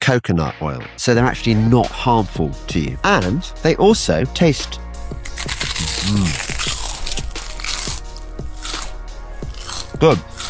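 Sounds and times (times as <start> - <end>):
speech: 0.1 - 4.8, 5.4 - 6.5, 10.0 - 10.3
crisps cooked in coconut oil crunching as eaten: 5.2 - 10.4.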